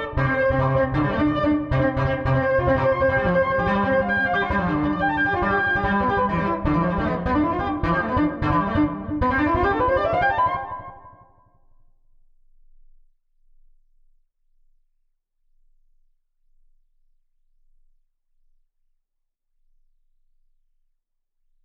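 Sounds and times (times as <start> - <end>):
String Studio VS3 synthesized strings: 0.0 - 11.2.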